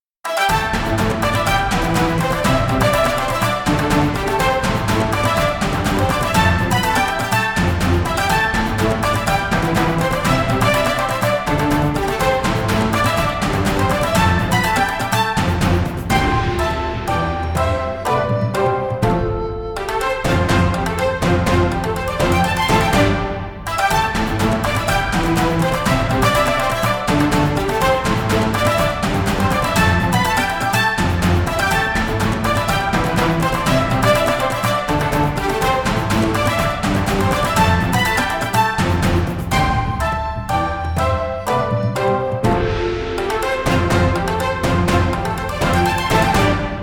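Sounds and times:
victory song: 0:00.3 - 0:46.8.

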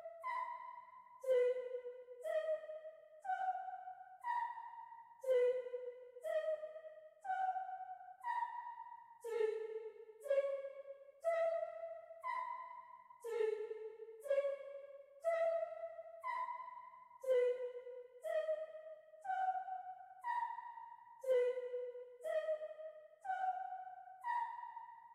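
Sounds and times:
space choir: 0:00.0 - 0:25.1.

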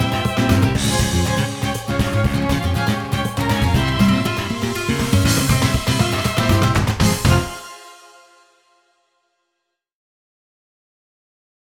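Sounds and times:
flamenco music: 0:00.0 - 0:08.5.

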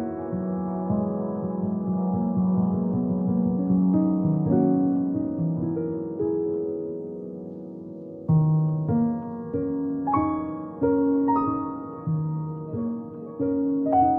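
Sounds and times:
piano from a game rip: 0:00.0 - 0:14.1.

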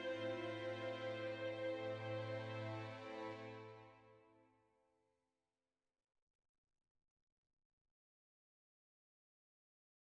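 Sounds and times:
sad soft music: 0:00.0 - 0:04.3.

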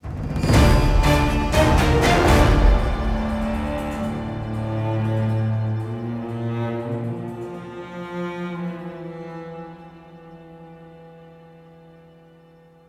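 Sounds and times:
miniboss game music outro: 0:00.4 - 0:06.0.

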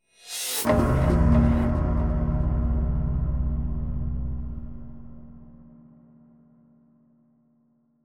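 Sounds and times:
synth stab: 0:00.6 - 0:05.6.

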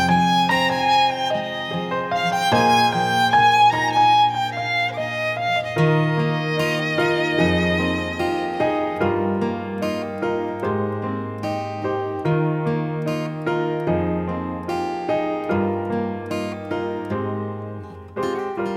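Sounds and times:
violin: 0:00.0 - 0:10.4
guitar: 0:00.0 - 0:18.7
piano: 0:00.0 - 0:18.7.

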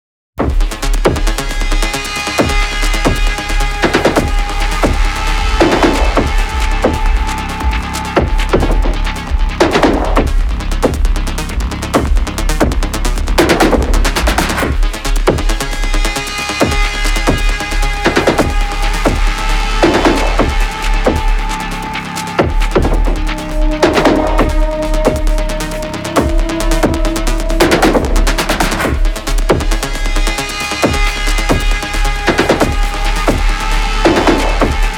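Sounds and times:
combat music loop: 0:00.4 - 0:34.9.

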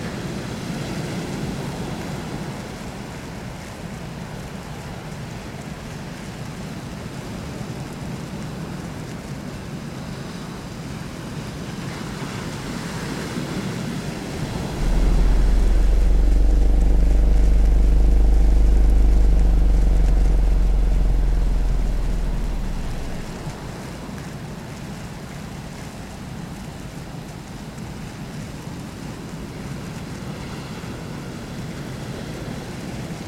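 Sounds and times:
molten ambience: 0:14.3 - 0:23.9.

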